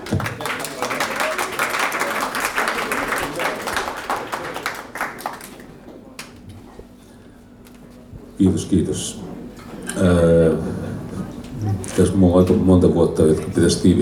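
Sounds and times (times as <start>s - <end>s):
audience applause: 0.0s - 5.8s
speech: 8.4s - 9.3s, 10.0s - 10.8s, 12.0s - 14.0s.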